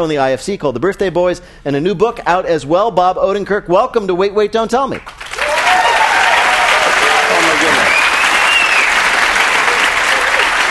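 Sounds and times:
speech: 0.0 - 5.2
studio audience applause welcoming a guest: 5.0 - 10.6.

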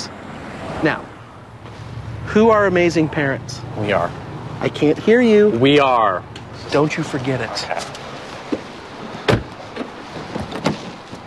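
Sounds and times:
speech: 0.8 - 1.1, 2.3 - 7.9
car door slamming shut: 8.5 - 11.1.

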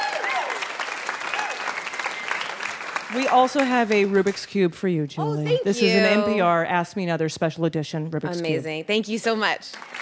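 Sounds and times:
cheering and whoops: 0.0 - 2.5
live audience applause at a quiz show taping: 0.0 - 4.5, 9.7 - 10.0
speech: 3.1 - 10.0.

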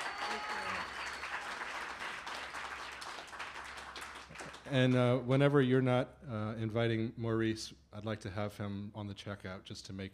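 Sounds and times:
audience clapping: 0.0 - 5.1
speech: 4.7 - 10.1.

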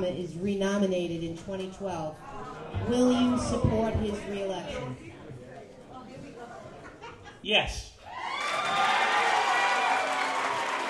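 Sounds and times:
speech: 0.0 - 5.1, 7.4 - 7.9
crowd booing: 8.1 - 10.8.

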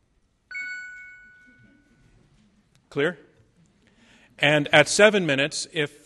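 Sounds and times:
electronic debate warning chime: 0.5 - 2.0
speech: 2.9 - 3.3, 4.4 - 6.0.

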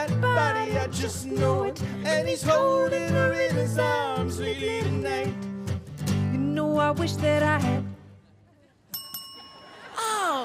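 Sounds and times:
speech: 0.4 - 5.5, 6.6 - 7.9
quiz contestant's bell dinging: 8.9 - 10.0.

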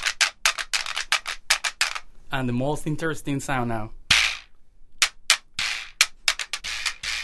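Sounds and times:
donkey jawbone played by raking a stick across its teeth: 0.0 - 2.0, 4.1 - 7.2
speech: 2.3 - 4.0.

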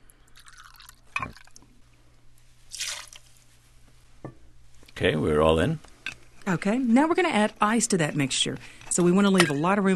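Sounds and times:
rye whiskey poured into mixing glass: 0.4 - 1.7, 2.7 - 3.2
speech: 5.0 - 9.9.

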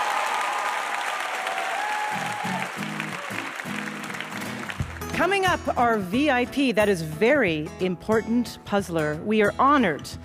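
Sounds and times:
audience applause: 0.0 - 5.2
speech: 5.2 - 10.2.

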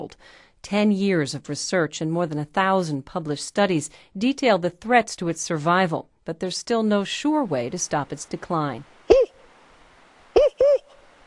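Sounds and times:
speech: 0.0 - 8.9
man imitating northern spotted owl hoots: 9.1 - 9.5, 10.3 - 11.0.

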